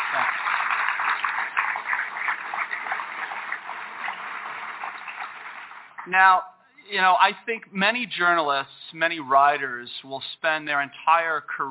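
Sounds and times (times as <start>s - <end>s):
audience applause: 0.0s - 6.1s
speech: 0.1s - 0.4s, 6.1s - 11.6s.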